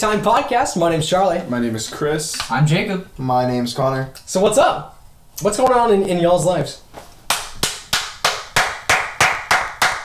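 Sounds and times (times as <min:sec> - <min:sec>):
speech: 0:00.0 - 0:07.0
sharp hand claps: 0:07.3 - 0:10.0.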